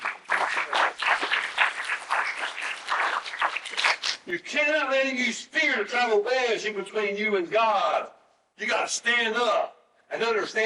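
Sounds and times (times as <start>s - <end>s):
audience clapping hands: 0.0s - 4.3s
speech: 4.3s - 10.6s.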